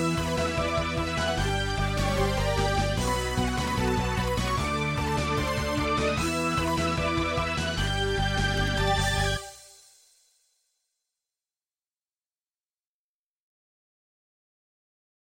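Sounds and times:
MIDI battle music: 0.0s - 9.7s.

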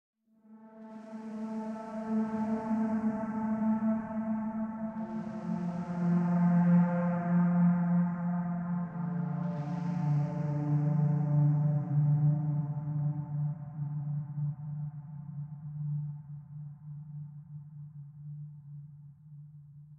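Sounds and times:
ambient drone: 1.0s - 17.0s.

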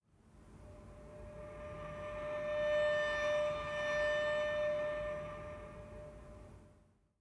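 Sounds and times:
savannah-themed music: 0.5s - 7.1s.

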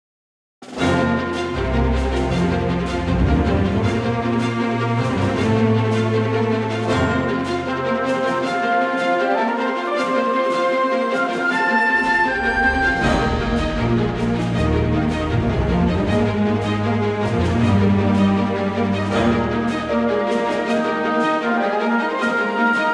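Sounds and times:
main theme suite at 157 BPM: 0.6s - 22.9s.

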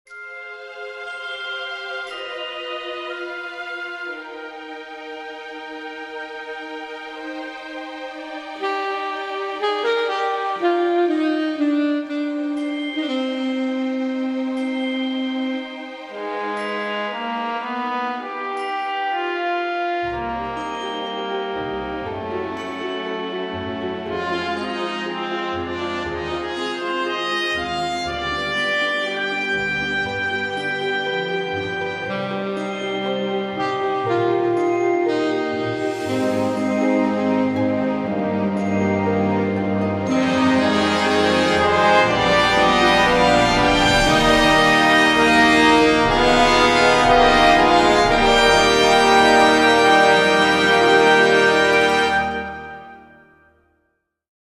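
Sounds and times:
instrumental music without vocals: 0.1s - 53.8s.

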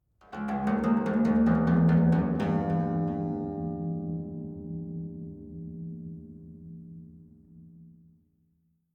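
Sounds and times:
savannah-themed music: 0.0s - 8.9s.

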